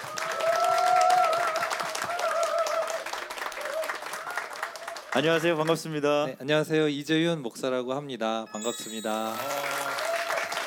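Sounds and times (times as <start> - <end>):
audience applause: 0.0 - 5.6, 9.0 - 10.6
speech: 5.2 - 9.7.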